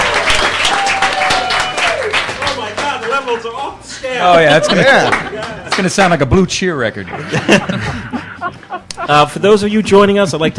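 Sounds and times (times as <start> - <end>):
live studio audience applauding at a first-time taping: 0.0 - 3.4, 4.5 - 6.1
speech: 3.3 - 10.5
laughter: 4.1 - 6.0, 6.9 - 9.8.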